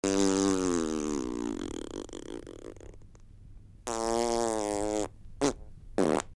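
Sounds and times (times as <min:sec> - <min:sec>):
really big fart: 0:00.0 - 0:03.1, 0:03.8 - 0:06.3.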